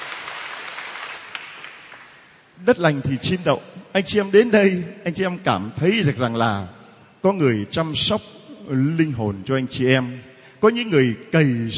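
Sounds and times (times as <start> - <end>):
church congregation applause welcoming visitors from other parishes: 0.0 - 2.4
speech: 2.6 - 11.7.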